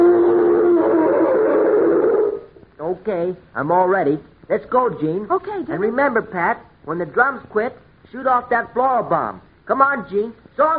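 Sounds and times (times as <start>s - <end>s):
roar sound effect: 0.0s - 2.5s
speech: 3.0s - 10.7s.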